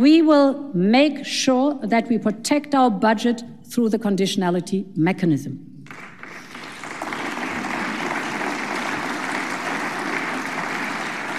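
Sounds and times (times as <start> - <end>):
speech: 0.0 - 6.1
applause from a large crowd in a parliament chamber: 5.9 - 11.3.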